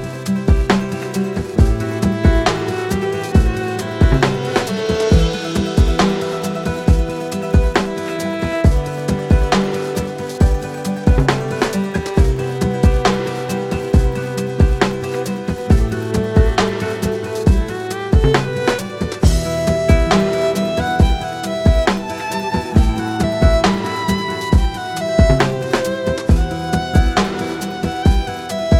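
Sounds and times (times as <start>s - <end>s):
chilled guitar: 0.0s - 28.7s
chilled violin: 0.0s - 28.7s.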